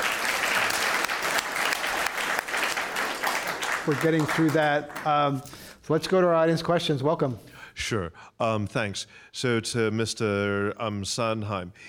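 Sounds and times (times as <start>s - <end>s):
audience applause at a political panel event: 0.0s - 5.2s
speech: 3.9s - 11.8s.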